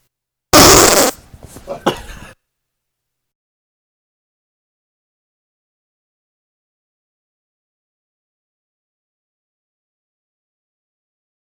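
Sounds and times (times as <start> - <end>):
fart: 0.6 - 1.6.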